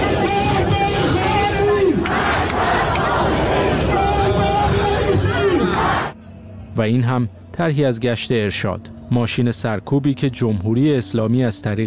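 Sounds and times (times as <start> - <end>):
large protest crowd chanting slogans in unison: 0.0 - 6.3
sharp claps: 1.2 - 4.0
speech: 6.8 - 11.8.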